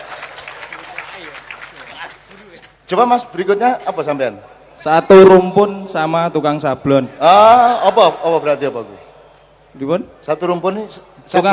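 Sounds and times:
audience scattered clapping: 0.0 - 2.9
speech: 2.9 - 9.1, 9.8 - 11.5.

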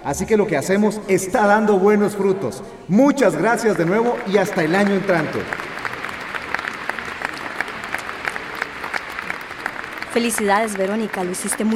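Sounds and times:
speech: 0.0 - 5.7, 10.2 - 11.7
crowd applauding in a full school gym: 3.4 - 11.7.

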